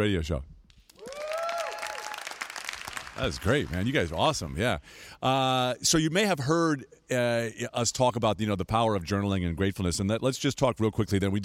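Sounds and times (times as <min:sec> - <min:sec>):
speech: 0:00.0 - 0:00.5, 0:03.2 - 0:11.4
audience applause: 0:01.0 - 0:04.2.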